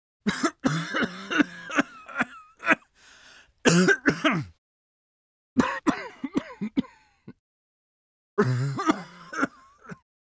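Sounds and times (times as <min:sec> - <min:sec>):
man coughing painfully: 0:00.3 - 0:02.9, 0:03.7 - 0:04.6, 0:05.6 - 0:07.3, 0:08.4 - 0:10.0.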